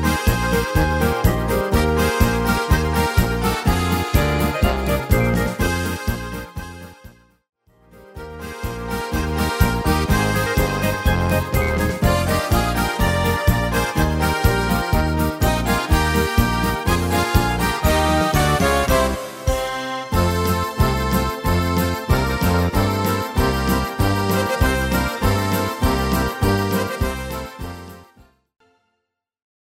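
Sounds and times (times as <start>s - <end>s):
Bohemian music medley: 0.0s - 28.9s.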